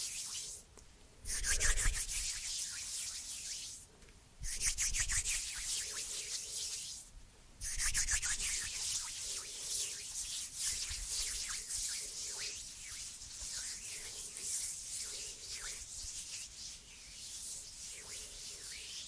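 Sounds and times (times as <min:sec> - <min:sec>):
hands rubbing together with a dry scratchy hiss: 0:00.0 - 0:00.6, 0:01.3 - 0:19.0.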